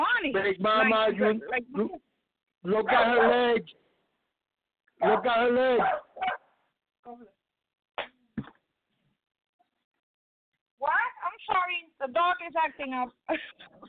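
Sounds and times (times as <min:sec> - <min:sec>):
speech: 0:00.2 - 0:03.8, 0:05.0 - 0:06.4, 0:07.0 - 0:07.4, 0:10.8 - 0:13.8
dog barking: 0:02.8 - 0:03.5, 0:05.0 - 0:06.6.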